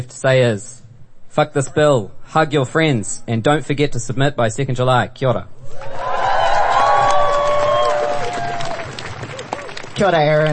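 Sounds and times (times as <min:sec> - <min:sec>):
speech: 0:00.0 - 0:00.8, 0:01.4 - 0:06.1, 0:10.0 - 0:10.5
crowd whooping and shouting: 0:05.6 - 0:09.9
large crowd clapping: 0:06.0 - 0:10.5.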